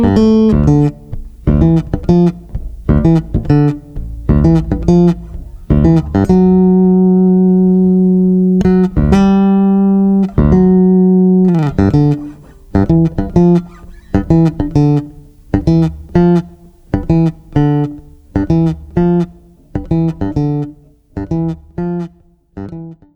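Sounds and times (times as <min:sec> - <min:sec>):
blues harmony part: 0:00.0 - 0:23.1.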